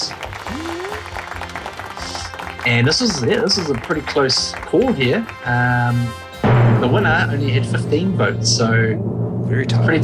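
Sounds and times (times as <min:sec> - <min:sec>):
clapping: 0:00.0 - 0:06.4
speech: 0:02.6 - 0:06.2, 0:06.8 - 0:10.0.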